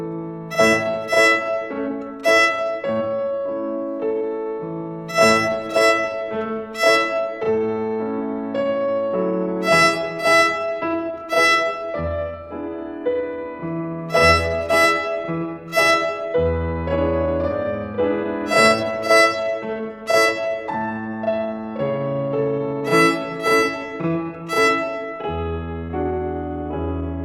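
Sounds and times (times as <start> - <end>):
violin rhythm on E string: 0.3 - 27.1.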